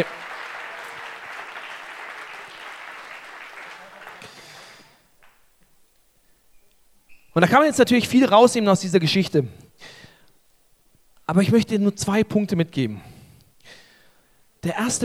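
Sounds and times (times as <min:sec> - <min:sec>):
speech: 0:00.0 - 0:00.2, 0:07.4 - 0:09.6, 0:11.3 - 0:13.1, 0:14.6 - 0:15.0
audience applause: 0:00.0 - 0:05.5.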